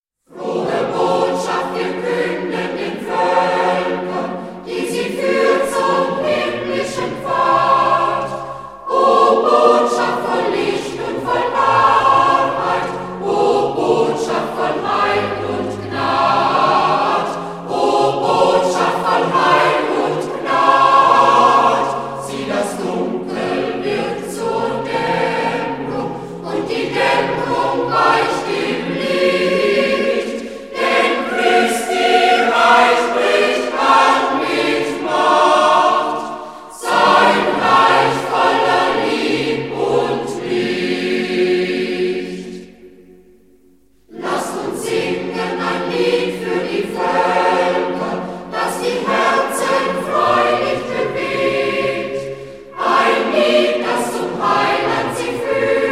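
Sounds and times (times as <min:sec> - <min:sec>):
choir singing: 0:00.3 - 0:55.9.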